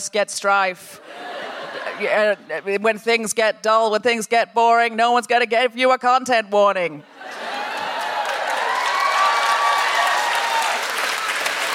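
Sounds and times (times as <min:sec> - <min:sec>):
speech: 0:00.0 - 0:07.4
laughter: 0:01.0 - 0:02.9, 0:07.0 - 0:08.6
audience applause: 0:07.2 - 0:11.7.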